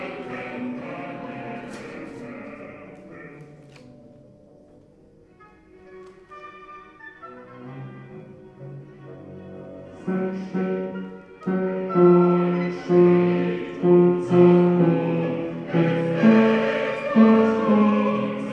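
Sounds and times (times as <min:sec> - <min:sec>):
tenors singing: 0:00.0 - 0:03.8, 0:09.9 - 0:18.5.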